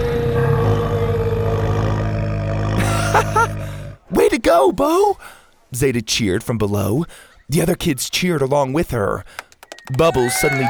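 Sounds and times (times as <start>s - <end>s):
giant plesiosaur moaning: 0.0s - 4.0s
laughter: 2.8s - 3.8s, 9.9s - 10.6s
speech: 4.5s - 10.6s.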